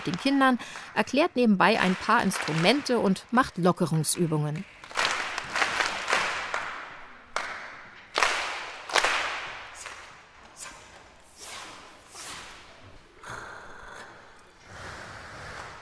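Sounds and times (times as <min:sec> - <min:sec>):
speech: 0:00.0 - 0:05.0
children clapping: 0:01.7 - 0:03.1, 0:04.6 - 0:10.1.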